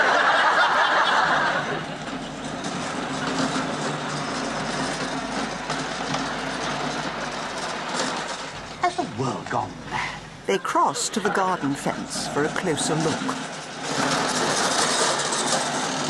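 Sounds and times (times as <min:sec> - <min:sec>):
laughter: 0:00.0 - 0:02.0, 0:09.9 - 0:12.5
lawn mower running: 0:00.0 - 0:16.0
speech: 0:09.2 - 0:13.6.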